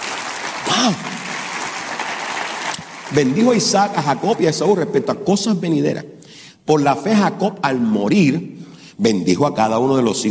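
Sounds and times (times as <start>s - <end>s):
audience applauding: 0.0s - 4.8s
speech: 0.8s - 1.1s, 3.1s - 10.2s.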